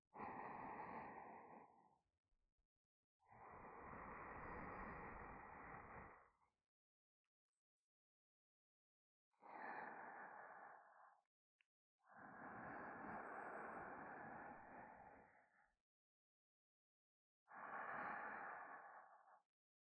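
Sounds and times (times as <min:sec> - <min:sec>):
sleeping breath in the left ear: 0:00.1 - 0:02.0, 0:03.3 - 0:06.4, 0:09.4 - 0:11.3, 0:12.0 - 0:15.8, 0:17.5 - 0:19.5.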